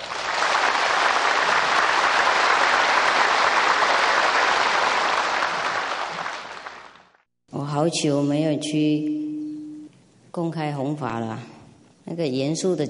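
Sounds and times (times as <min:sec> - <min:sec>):
audience applause: 0:00.0 - 0:07.2
speech: 0:07.8 - 0:09.2, 0:10.4 - 0:12.8.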